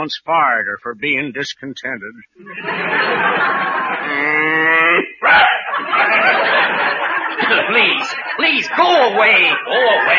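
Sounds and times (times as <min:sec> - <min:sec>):
speech: 0:00.0 - 0:10.1
crowd laughing: 0:02.4 - 0:10.1
cow mooing: 0:04.0 - 0:05.1.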